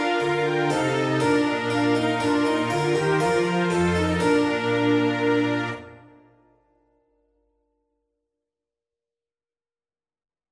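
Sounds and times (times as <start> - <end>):
minuet: 0.0 - 6.2.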